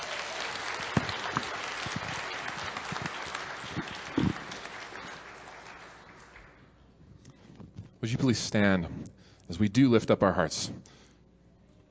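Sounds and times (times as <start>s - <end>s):
audience applause for graduates: 0.0s - 6.6s
speech: 8.1s - 10.9s.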